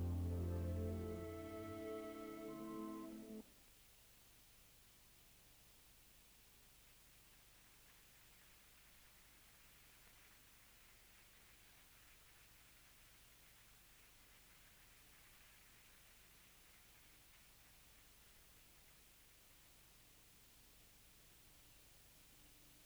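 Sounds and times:
instrumental solo: 0:00.0 - 0:03.4
music loop: 0:00.0 - 0:03.4.

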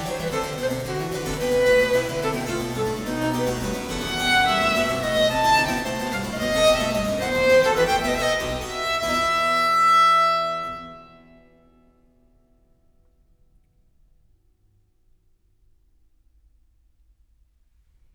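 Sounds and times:
harpsichord: 0:00.0 - 0:10.3
violin: 0:00.0 - 0:11.4.

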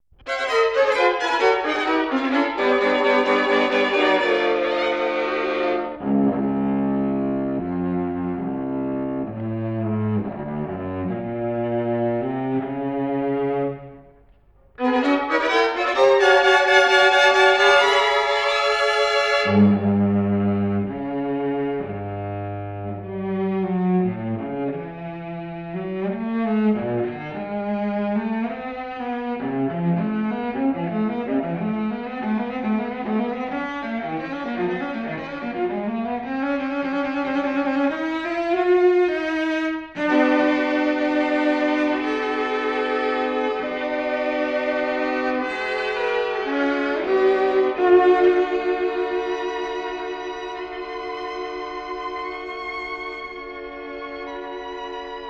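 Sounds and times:
string quartet in A minor: 0:00.2 - 0:55.2.

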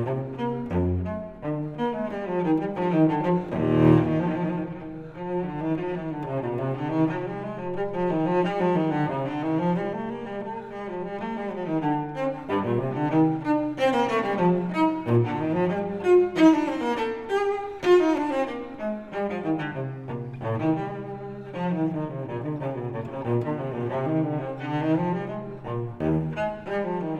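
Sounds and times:
solo cello suite in E: 0:00.0 - 0:27.1.

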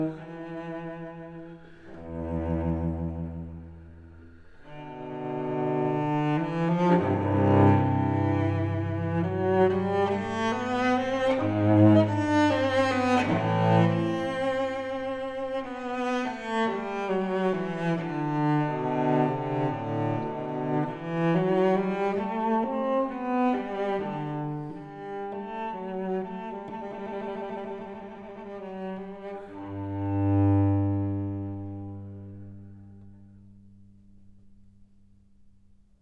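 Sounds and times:
solo cello suite: 0:00.0 - 0:35.6.

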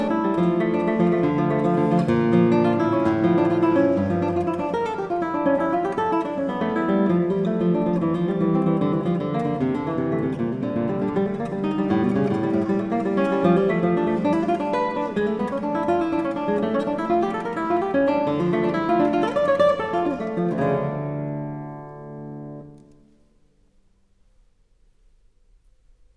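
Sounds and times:
classical piece in D minor played on guitar: 0:00.0 - 0:24.4.

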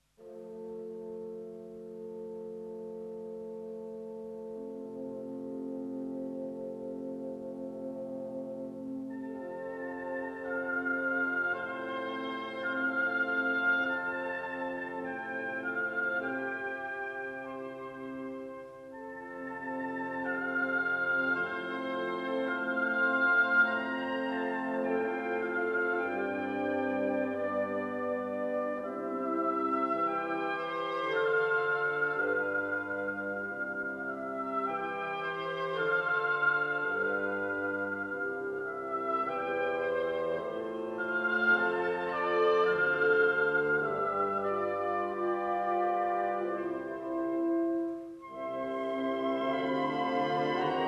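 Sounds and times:
violin concerto adagio: 0:00.0 - 0:50.8.

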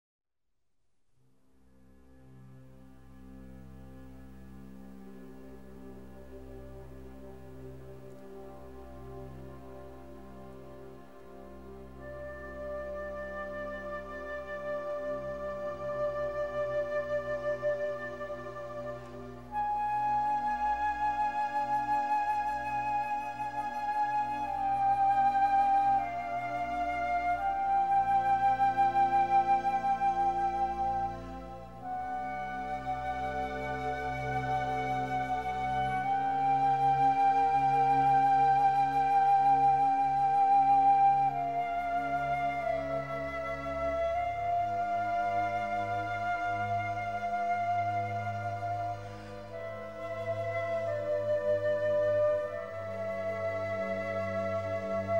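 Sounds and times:
flute concerto in G minor: 0:02.1 - 0:55.1.

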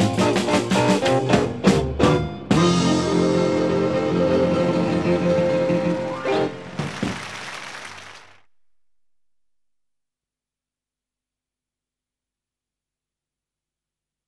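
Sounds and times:
honky tonk music: 0:00.0 - 0:07.4.

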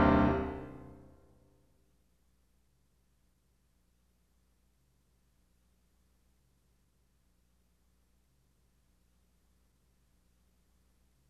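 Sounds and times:
piano sonata in C minor: 0:00.0 - 0:01.1.

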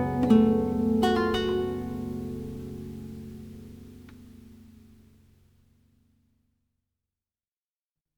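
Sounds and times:
lute sarabande in G minor: 0:00.0 - 0:05.1.

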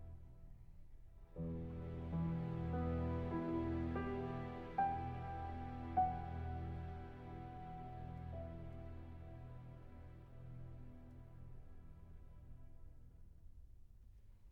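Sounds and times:
piano concerto in G major: 0:01.3 - 0:12.1.

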